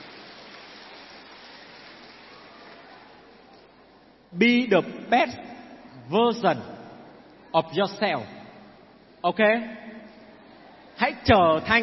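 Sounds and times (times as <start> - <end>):
crowd applauding: 0.0 - 3.3
speech: 4.3 - 6.8, 7.6 - 8.4, 9.2 - 9.9, 11.2 - 11.8.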